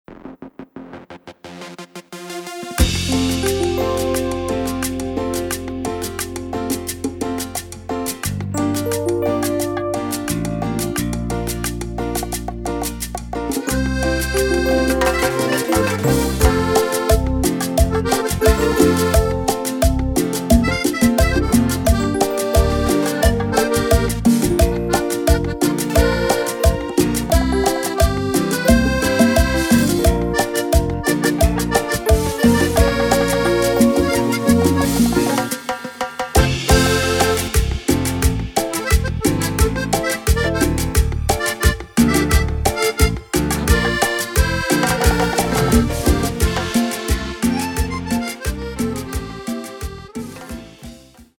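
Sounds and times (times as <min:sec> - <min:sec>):
cumbia version: 0:00.1 - 0:51.3.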